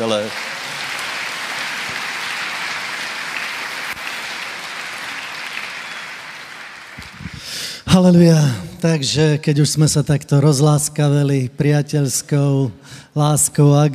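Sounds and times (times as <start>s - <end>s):
speech: 0.0s - 0.4s, 8.0s - 13.9s
audience applause: 0.0s - 7.8s.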